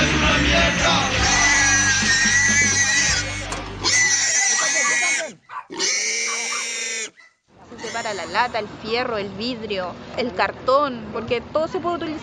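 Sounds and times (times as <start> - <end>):
pigs squealing: 0.8 - 8.7
speech: 8.2 - 12.2.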